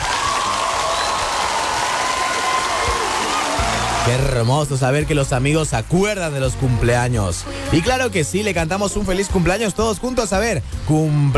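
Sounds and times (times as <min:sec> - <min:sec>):
crowd applause: 0:00.0 - 0:04.5
speech: 0:04.1 - 0:11.3.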